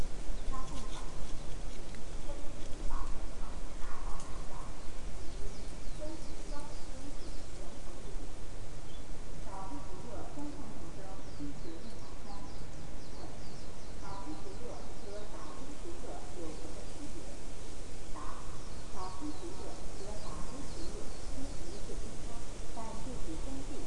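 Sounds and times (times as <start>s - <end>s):
biophony natural animal sounds: 0.0s - 23.8s.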